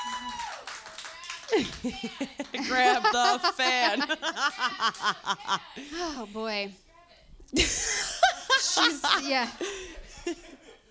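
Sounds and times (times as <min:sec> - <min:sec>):
audience clapping: 0:00.0 - 0:05.6
laughter: 0:01.0 - 0:06.6, 0:07.6 - 0:10.9
speech: 0:01.5 - 0:06.8, 0:07.5 - 0:08.0, 0:08.8 - 0:10.5.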